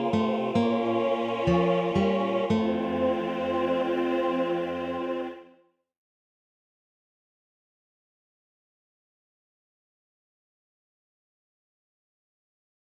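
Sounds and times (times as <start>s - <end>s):
tenor section of a choir singing: 0.0s - 5.6s.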